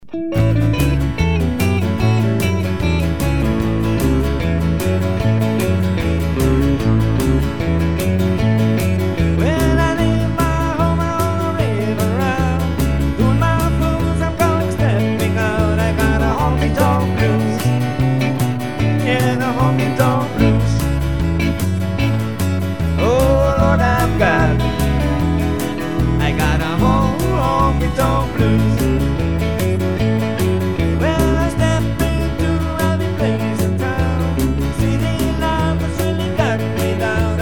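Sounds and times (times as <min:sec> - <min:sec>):
honky tonk blues: 0:00.0 - 0:37.4.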